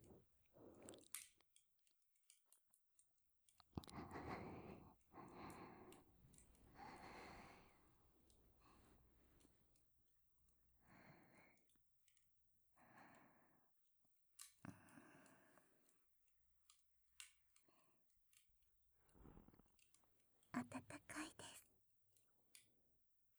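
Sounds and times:
slow gentle nibbling on the left: 0:00.0 - 0:02.8, 0:03.4 - 0:10.0, 0:16.6 - 0:21.7.

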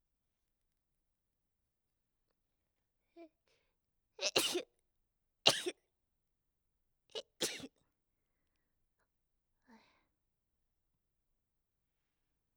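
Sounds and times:
sneezes: 0:04.2 - 0:04.7, 0:05.5 - 0:05.8, 0:07.2 - 0:07.7.

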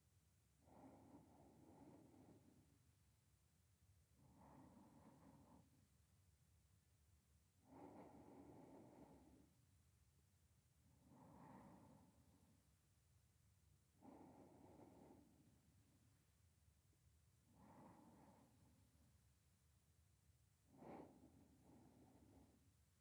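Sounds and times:
sleeping breath voice beside the listener: 0:00.6 - 0:02.8, 0:04.1 - 0:05.8, 0:07.6 - 0:09.6, 0:11.0 - 0:12.7, 0:14.0 - 0:15.7, 0:17.5 - 0:19.1, 0:20.7 - 0:22.7.

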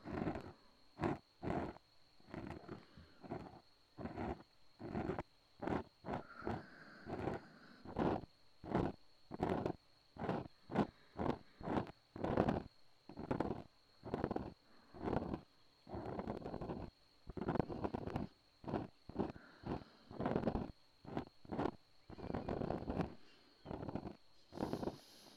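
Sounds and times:
ear cleaning: 0:00.0 - 0:25.3
breathing into the left ear: 0:02.7 - 0:03.4, 0:06.1 - 0:08.1, 0:14.6 - 0:15.4, 0:19.2 - 0:20.7, 0:24.3 - 0:25.3.

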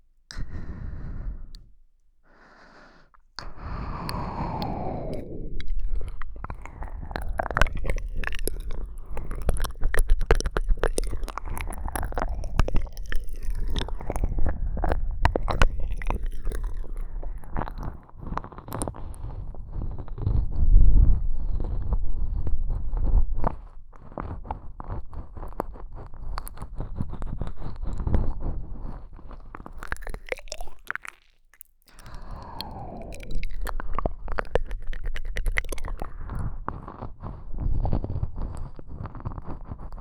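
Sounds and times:
breathy exhales: 0:00.3 - 0:07.5
ear licking: 0:00.3 - 0:39.9.

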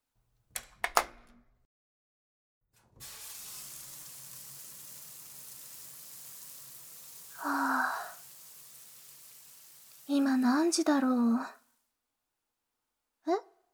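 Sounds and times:
sharp clicks and knocks: 0:00.5 - 0:01.4
shower water running: 0:03.0 - 0:11.6
speech: 0:10.4 - 0:11.6.

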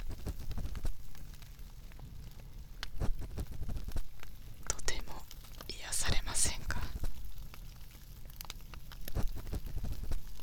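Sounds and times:
fireplace crackling: 0:00.0 - 0:10.4
soft whispering voice: 0:04.6 - 0:07.2.

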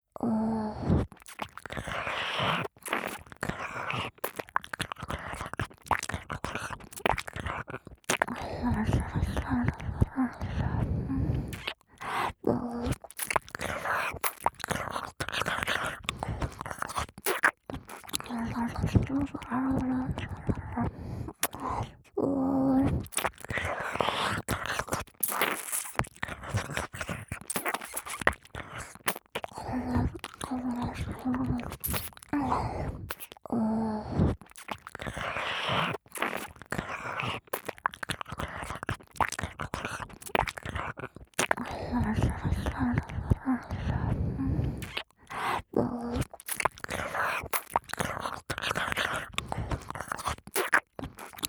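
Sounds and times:
intense ear licking on the right side: 0:00.8 - 0:21.9, 0:22.8 - 0:51.4.

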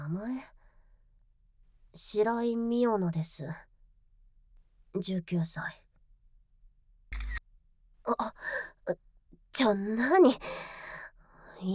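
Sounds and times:
speech: 0:00.2 - 0:00.6, 0:02.0 - 0:03.7, 0:04.9 - 0:05.8, 0:08.0 - 0:10.8, 0:11.6 - 0:11.7
camera shutter click taking a photo: 0:07.1 - 0:07.4.

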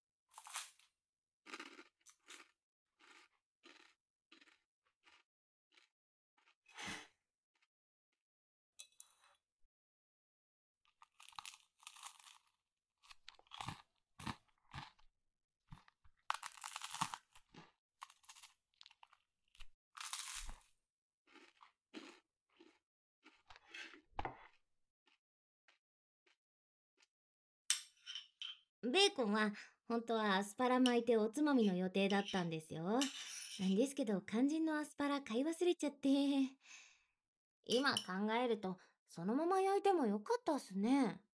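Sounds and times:
crunchy toast being bitten and chewed: 0:00.3 - 0:07.7, 0:10.9 - 0:15.1, 0:15.7 - 0:27.2
speech: 0:28.8 - 0:36.9, 0:37.6 - 0:41.2.

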